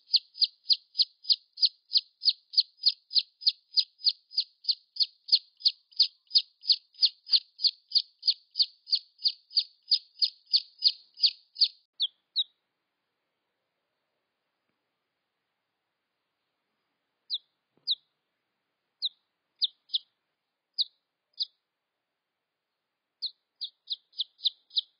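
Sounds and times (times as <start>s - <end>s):
red junglefowl chick peeping: 0.0s - 12.5s, 17.3s - 18.1s, 19.0s - 20.1s, 23.2s - 24.9s.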